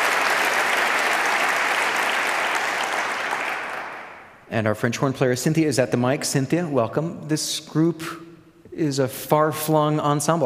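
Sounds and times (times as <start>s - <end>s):
audience applause welcoming a young wind quintet: 0.0s - 4.3s
speech: 4.5s - 10.4s.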